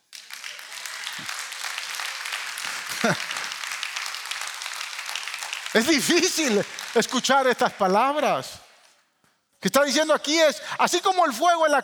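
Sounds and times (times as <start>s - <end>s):
audience applause: 0.0s - 8.0s
laughter: 2.2s - 3.7s, 5.8s - 7.6s
speech: 3.0s - 3.3s, 5.7s - 8.6s, 9.6s - 11.8s.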